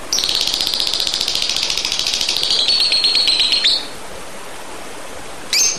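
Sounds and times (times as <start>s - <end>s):
Oriental magpie-robin calling: 0.1s - 4.0s, 5.5s - 5.7s.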